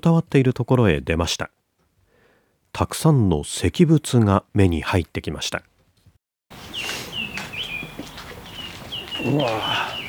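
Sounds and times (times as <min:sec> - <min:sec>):
speech: 0:00.0 - 0:01.6, 0:02.8 - 0:05.7, 0:09.2 - 0:09.9
small bird singing in temple grounds among stone Buddha statues: 0:06.6 - 0:10.0.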